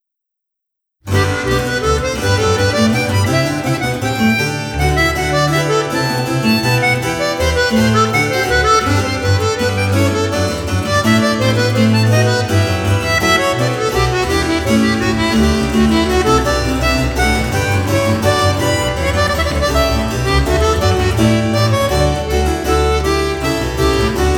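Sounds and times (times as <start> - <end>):
sonata for violin and continuo in G major Vivace: 1.1 - 24.3.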